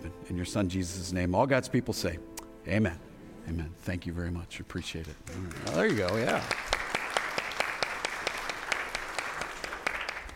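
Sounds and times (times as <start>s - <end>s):
speech: 0.3s - 6.7s
crowd round of applause: 5.0s - 10.3s.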